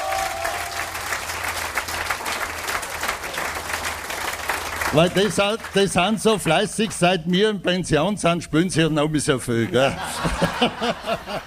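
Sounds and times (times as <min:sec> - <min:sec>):
audience applauding a folk music band: 0:00.0 - 0:06.7
speech: 0:04.9 - 0:11.4
laughter: 0:09.6 - 0:11.4.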